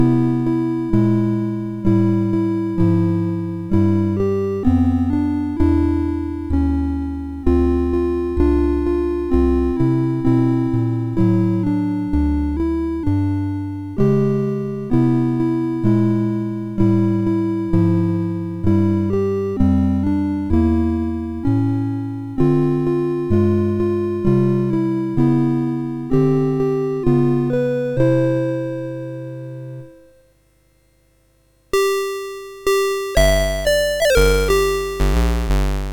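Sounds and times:
MOS6581 chiptune melody: 0.0s - 30.1s, 31.7s - 35.9s.

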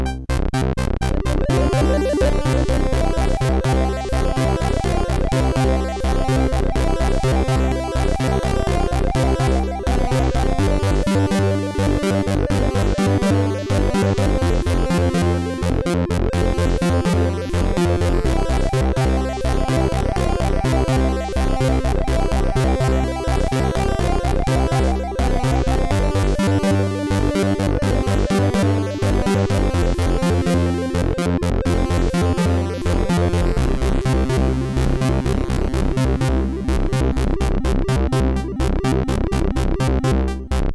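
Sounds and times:
SID MOS6581R3 chiptune end theme: 0.1s - 40.6s.

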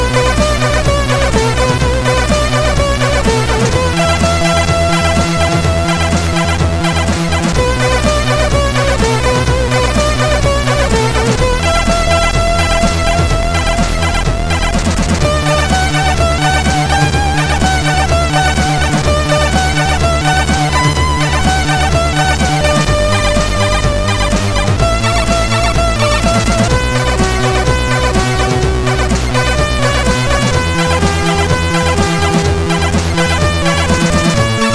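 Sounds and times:
SID CSG8580R5 chip music: 0.0s - 34.7s.

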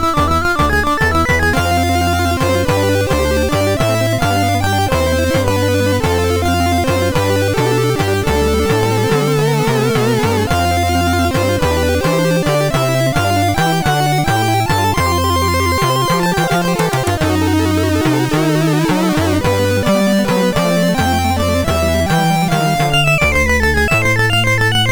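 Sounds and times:
chiptune music on MOS6581R4 sound chip: 0.0s - 24.9s.

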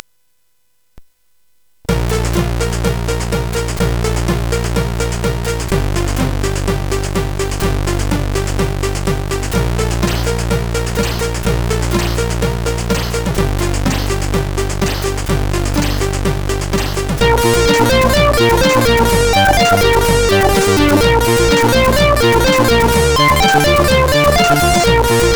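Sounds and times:
intro on CSG8580R5 sound chip: 1.9s - 25.3s.

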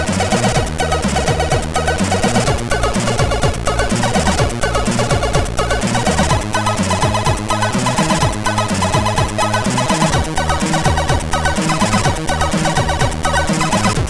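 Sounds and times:
tune on a MOS6581R3 SID chip: 0.0s - 14.0s.

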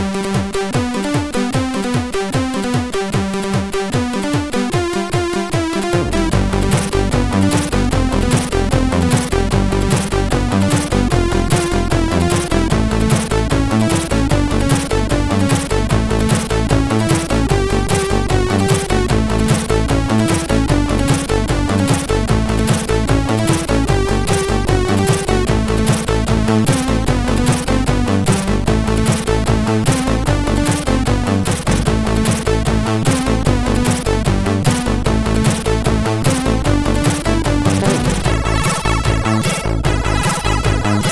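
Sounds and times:
swing music on a MOS6581R4 sound chip: 0.0s - 41.1s.

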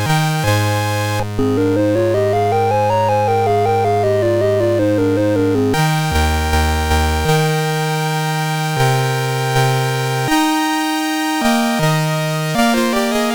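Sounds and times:
classical piece played on a MOS6581R4 SID chip: 0.0s - 13.3s.

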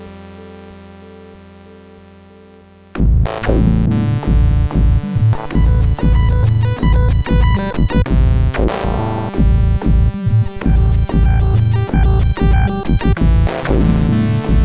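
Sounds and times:
frantic music mix: 3.0s - 14.6s.

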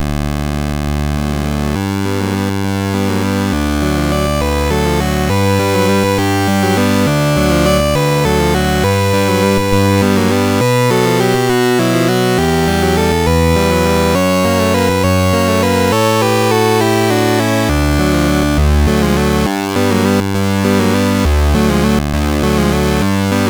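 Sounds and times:
chiptune game music on MOS 6581R4 SID chip: 0.4s - 23.4s.

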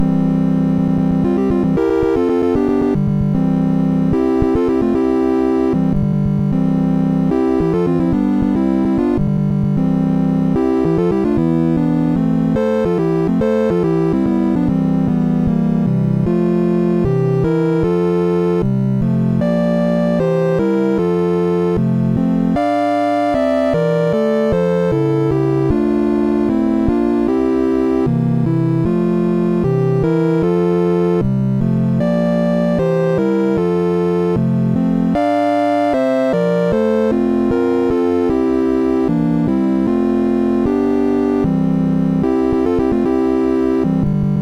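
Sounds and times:
MOS6581R3 SID chip game music: 0.0s - 44.4s.

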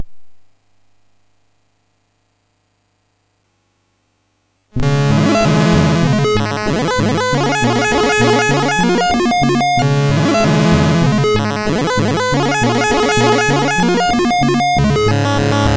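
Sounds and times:
wild arpeggio on MOS6581R4 chip: 4.8s - 15.7s.

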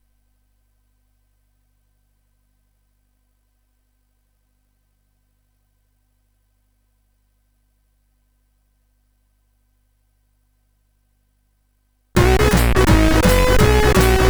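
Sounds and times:
jazz music on CSG8580R5: 12.2s - 14.2s.

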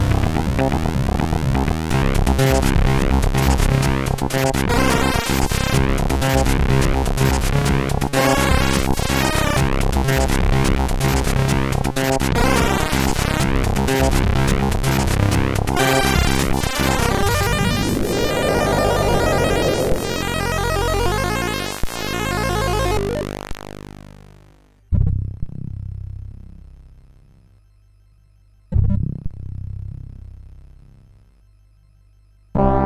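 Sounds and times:
jazzy chiptune music on CSG8580R5 chip: 0.0s - 24.5s, 32.6s - 32.8s.

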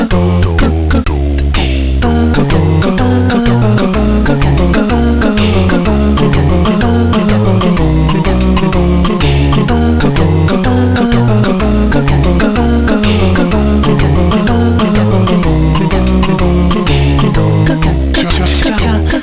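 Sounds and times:
chiptune music on a MOS6581R4 sound chip: 0.1s - 19.2s.

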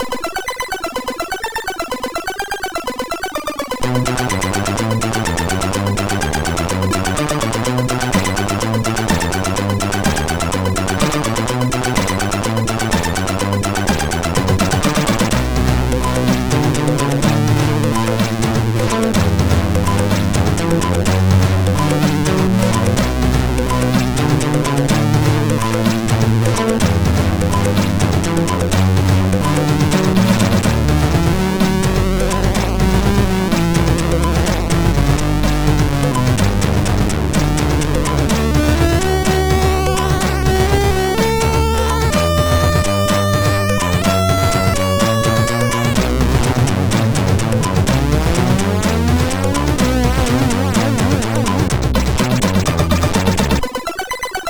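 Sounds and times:
SID chip MOS6581R4 music: 0.0s - 54.4s.

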